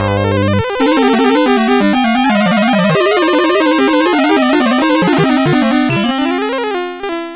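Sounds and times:
MOS 8580 SID chip game music: 0.2s - 7.3s.

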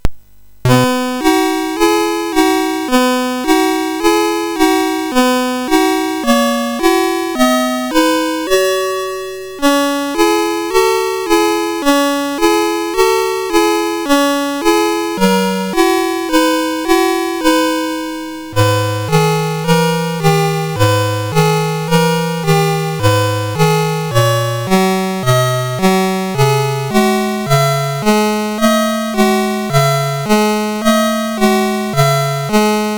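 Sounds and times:
MOS6581R4 SID chip game music: 0.7s - 32.9s.

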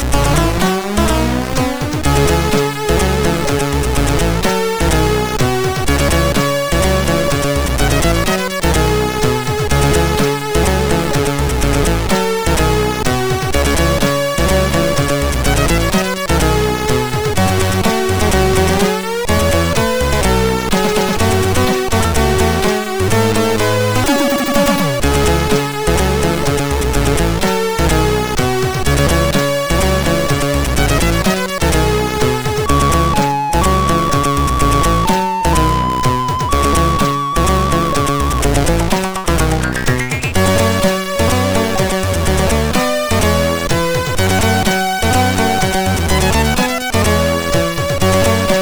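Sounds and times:
short chiptune on a MOS6581R3 sound chip: 0.2s - 28.3s, 28.9s - 48.5s.

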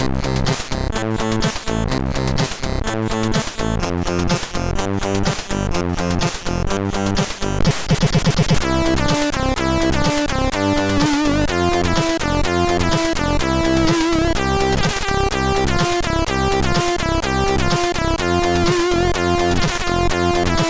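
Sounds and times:
MOS 6581R2 SID chip music: 0.0s - 20.6s.

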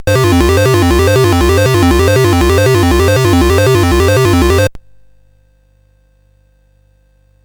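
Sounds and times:
SID chiptune music on CSG8580R5 chip: 0.0s - 4.7s.

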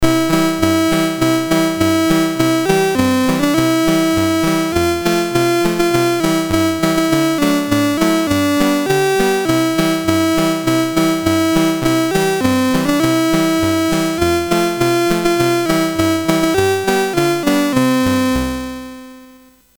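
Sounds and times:
Christmas music on Commodore MOS6581R3 chip: 0.0s - 19.7s.

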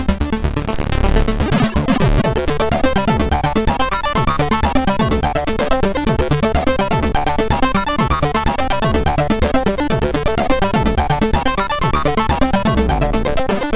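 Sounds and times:
MOS6581R2 SID chip synth pulse: 0.2s - 13.7s.

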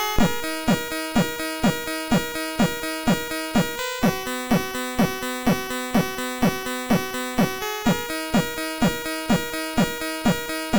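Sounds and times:
thunderstorm sound on SID MOS6581R3 chip: 0.2s - 10.7s.

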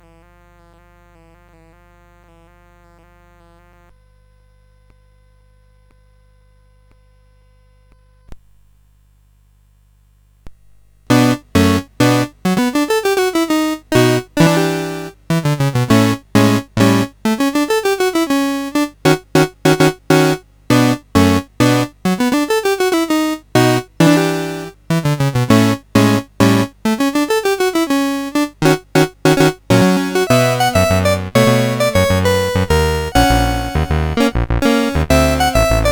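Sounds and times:
guitar etude: 11.1s - 35.8s.

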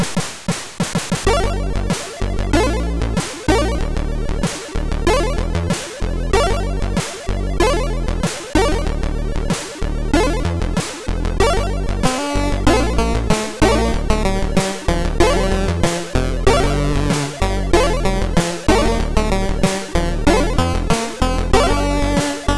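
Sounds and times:
relaxing MOS6581R2 SID chiptune music: 1.3s - 22.5s.

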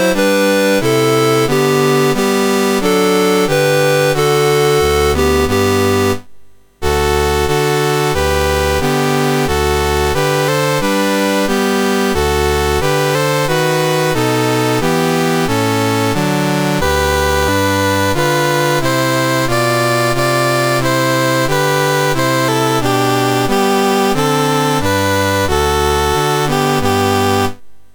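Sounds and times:
national anthem on MOS6581R3 sound chip: 0.0s - 27.7s.

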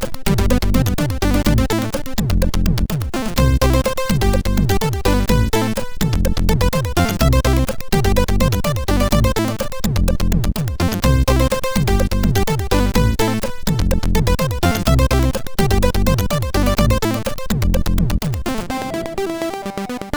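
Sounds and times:
chiptune music on a MOS6581R4 sound chip: 0.0s - 2.5s, 3.2s - 20.1s.

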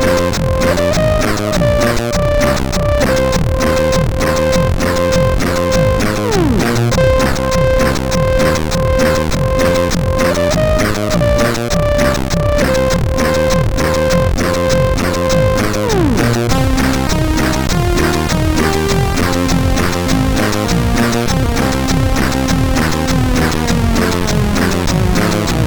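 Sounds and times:
MOS6581R4 chiptune sea music: 0.0s - 25.6s.

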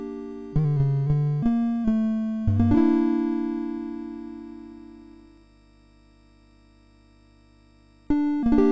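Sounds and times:
chiptune nocturne on a sound chip: 0.0s - 4.9s.

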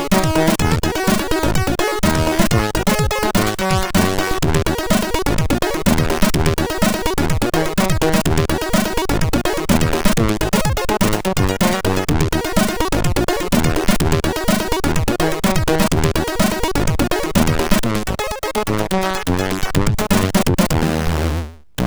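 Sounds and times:
funk chiptune music from MOS6581R3 sound chip: 0.0s - 21.8s.

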